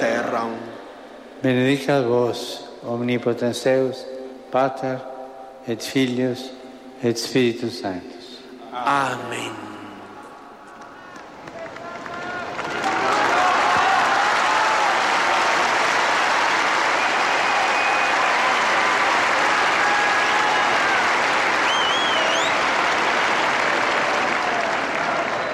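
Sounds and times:
speech: 0.3 - 0.8, 1.4 - 9.7
crowd applause in a packed square: 10.8 - 25.5.

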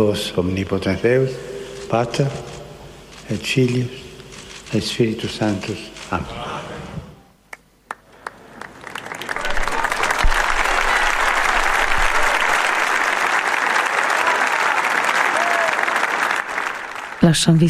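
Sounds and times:
speech: 0.0 - 2.6, 3.3 - 4.1, 4.7 - 6.5, 17.3 - 17.6
large audience applause: 7.9 - 17.4.

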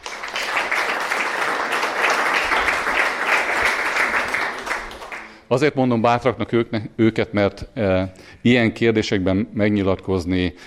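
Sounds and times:
big round of audience applause: 0.0 - 5.4
speech: 5.5 - 10.6.

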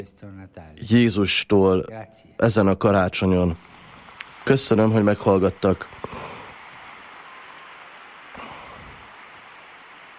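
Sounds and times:
speech: 0.0 - 3.8, 4.4 - 6.3
applause from pilgrims in audience hall: 2.9 - 10.1.

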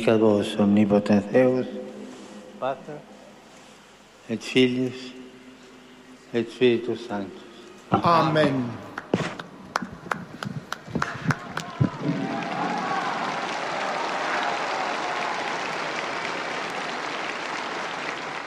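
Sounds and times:
speech: 0.0 - 1.8, 2.6 - 3.1, 4.3 - 5.2, 6.3 - 8.8
pilgrims applauding: 8.9 - 18.4.

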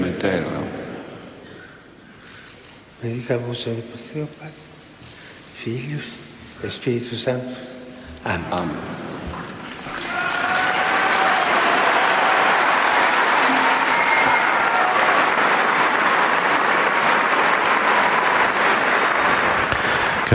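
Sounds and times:
speech: 3.0 - 4.7, 5.6 - 9.0
large crowd applause: 9.7 - 20.3
faint cheers: 9.9 - 19.4.

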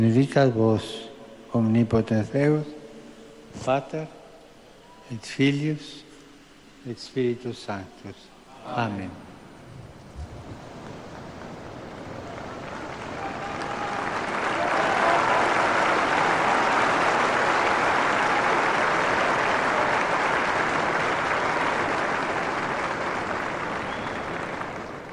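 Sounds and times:
speech: 0.0 - 2.8, 3.6 - 4.2, 5.1 - 6.0, 6.8 - 9.2
large crowd applause at papal audience: 9.8 - 25.1.

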